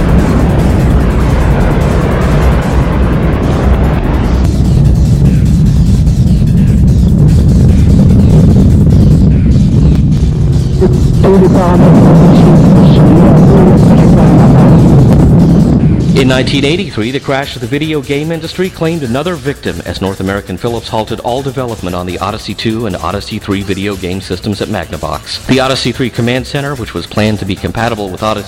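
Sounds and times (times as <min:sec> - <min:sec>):
rocket engine ignition and liftoff roar: 0:00.0 - 0:28.4
speech: 0:10.8 - 0:12.0, 0:16.2 - 0:28.4.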